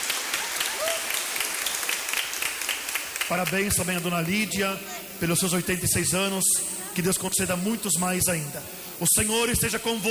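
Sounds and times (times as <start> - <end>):
applause: 0.0 - 4.1
speech: 3.3 - 10.1.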